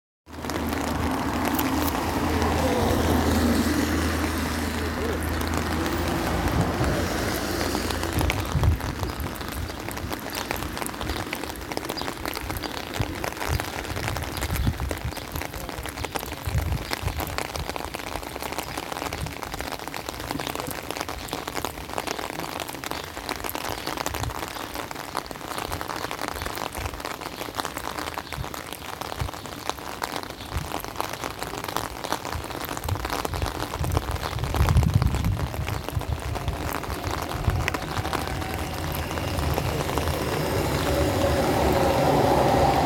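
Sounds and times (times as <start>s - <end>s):
rain: 0.2s - 42.8s
tram passing: 0.4s - 8.8s, 35.8s - 42.8s.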